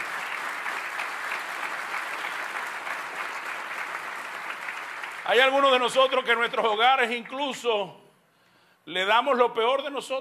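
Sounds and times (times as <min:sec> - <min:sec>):
audience applause: 0:00.0 - 0:06.3
speech: 0:05.3 - 0:08.0, 0:08.8 - 0:10.2.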